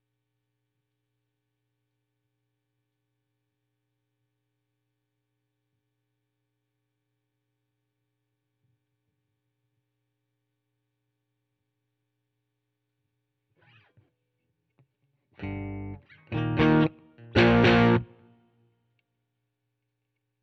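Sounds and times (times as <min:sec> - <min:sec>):
guitar: 0:13.5 - 0:18.4.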